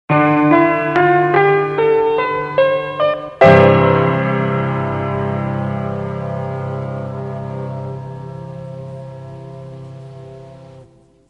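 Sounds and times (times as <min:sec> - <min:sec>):
piano: 0:00.1 - 0:11.2.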